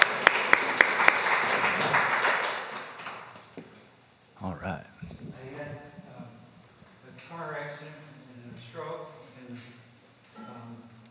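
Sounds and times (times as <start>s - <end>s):
audience applause: 0.0s - 3.4s.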